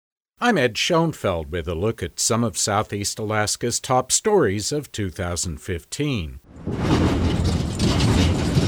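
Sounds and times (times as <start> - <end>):
speech: 0.4 - 7.2
metal clanking of cars on ferry deck: 6.6 - 8.6.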